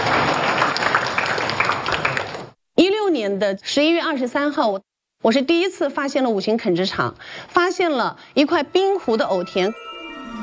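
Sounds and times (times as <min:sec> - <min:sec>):
audience clapping to welcome a speaker on stage: 0:00.0 - 0:02.6
speech: 0:03.2 - 0:09.9.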